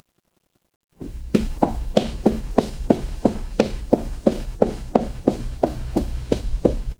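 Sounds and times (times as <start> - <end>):
footsteps on concrete: 1.0 - 6.9.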